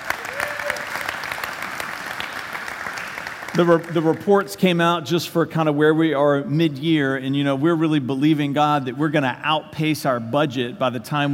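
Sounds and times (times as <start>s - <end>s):
audience applause: 0.0s - 4.4s
speech: 3.6s - 11.3s.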